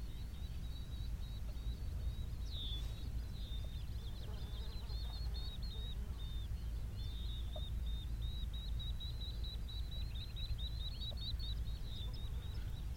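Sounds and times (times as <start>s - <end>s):
birds chirping: 0.0s - 12.9s.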